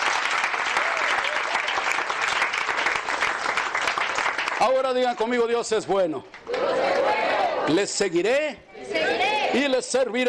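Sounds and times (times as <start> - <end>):
audience applauding loudly: 0.0 - 7.2
speech: 4.6 - 10.2.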